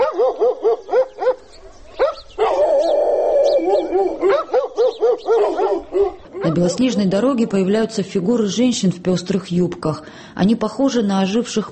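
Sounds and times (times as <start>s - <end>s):
dogs barking furiously: 0.0s - 6.8s
speech: 6.6s - 11.6s.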